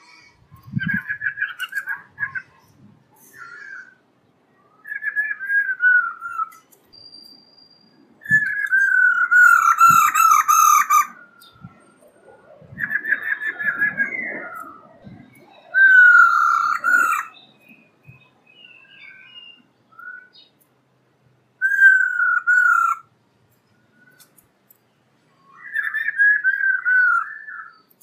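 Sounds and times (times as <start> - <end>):
black-throated laughingthrush song of whistles and a harsh burst: 4.7 - 11.7, 12.6 - 20.5, 21.6 - 23.1, 25.4 - 28.0.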